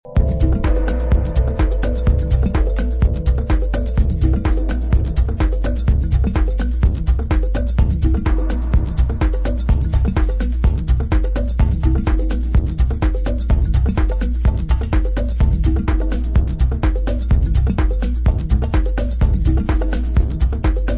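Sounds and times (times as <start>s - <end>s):
percussion track: 0.1s - 20.9s.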